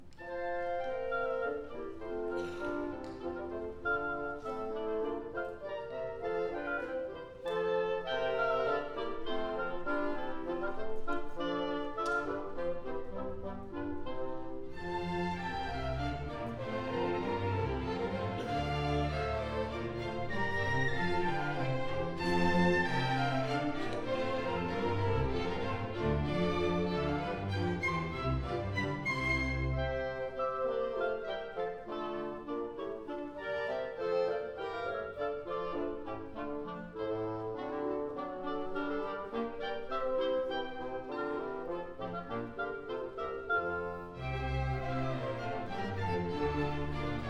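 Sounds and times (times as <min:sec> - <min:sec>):
horn playing an orchestral suite: 0:00.0 - 0:47.2.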